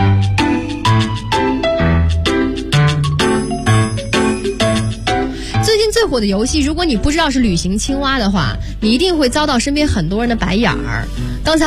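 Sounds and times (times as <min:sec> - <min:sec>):
video game background music with bell-like notes and plucked bass: 0:00.0 - 0:05.6
speech: 0:06.2 - 0:11.6.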